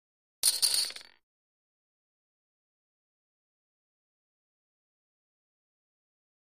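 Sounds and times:
poker chips tossed: 0.4 - 1.2.

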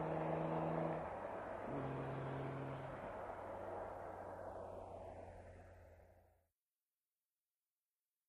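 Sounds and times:
Aston Martin engine starting: 0.0 - 6.1.

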